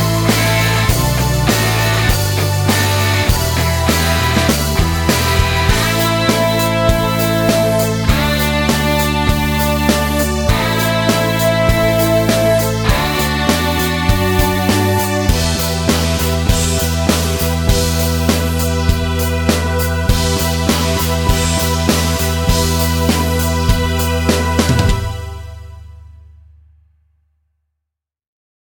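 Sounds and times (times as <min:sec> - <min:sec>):
rock guitar backing track: 0:00.0 - 0:25.8.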